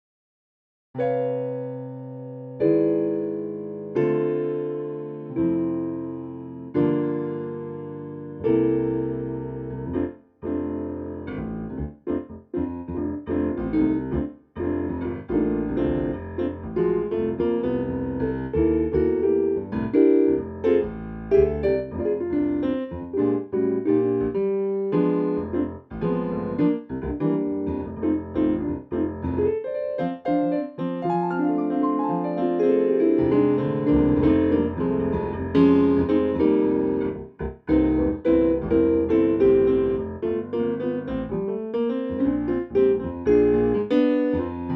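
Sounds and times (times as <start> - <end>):
jazz piano: 1.0 - 44.7.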